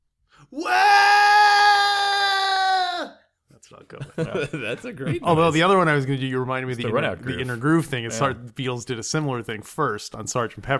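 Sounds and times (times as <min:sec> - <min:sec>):
speech: 0:00.5 - 0:00.8, 0:03.9 - 0:10.7
man imitating a primal scream: 0:00.5 - 0:03.2
laughter: 0:03.9 - 0:05.8.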